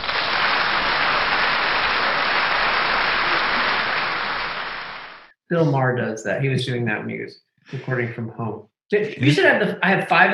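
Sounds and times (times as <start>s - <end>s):
crowd applauding: 0.0s - 5.3s
speech: 5.5s - 10.3s.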